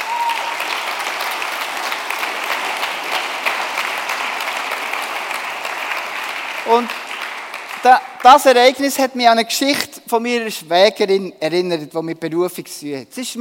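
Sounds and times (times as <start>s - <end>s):
audience applause: 0.0s - 8.7s
speech: 6.7s - 7.0s, 7.8s - 13.3s.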